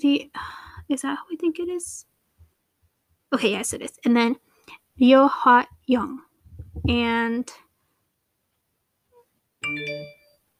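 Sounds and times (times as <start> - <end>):
speech: 0.0 - 2.1, 3.3 - 7.6, 9.6 - 10.2
mobile phone ringtone: 9.6 - 10.4.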